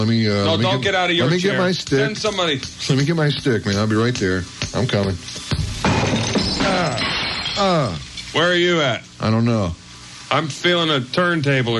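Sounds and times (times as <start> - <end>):
speech: 0.0 - 5.6, 6.6 - 11.7
glass shattering: 5.5 - 8.0.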